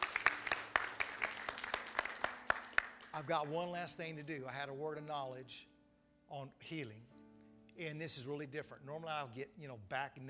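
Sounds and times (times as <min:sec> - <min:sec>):
church congregation clapping rhythmically: 0:00.0 - 0:03.6
speech: 0:03.2 - 0:05.7, 0:06.3 - 0:07.1, 0:07.8 - 0:10.2.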